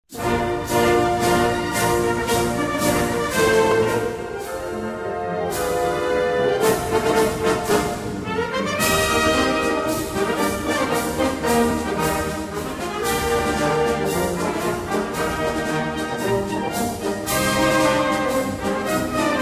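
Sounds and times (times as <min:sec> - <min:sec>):
march music: 0:00.1 - 0:19.4.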